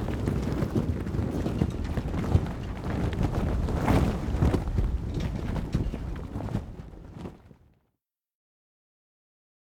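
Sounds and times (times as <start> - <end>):
sail being hoisted on a yacht: 0.0 - 7.6.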